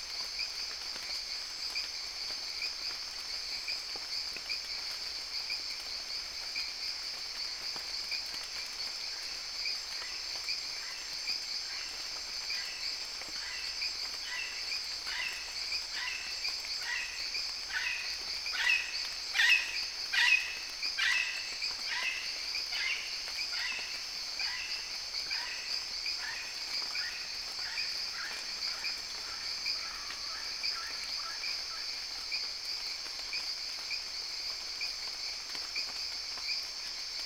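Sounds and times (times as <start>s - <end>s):
jungle frogs: 0.0s - 37.2s
rain: 0.0s - 37.2s.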